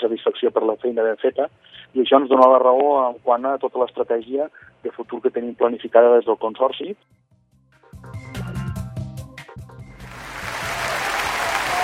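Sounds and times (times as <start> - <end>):
speech: 0.1 - 7.3
music with steady low beat: 7.4 - 10.6
audience applause: 9.9 - 11.8.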